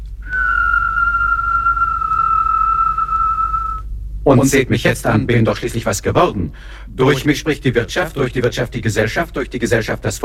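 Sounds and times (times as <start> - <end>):
whistling: 0.2 - 3.9
speech: 4.2 - 10.2.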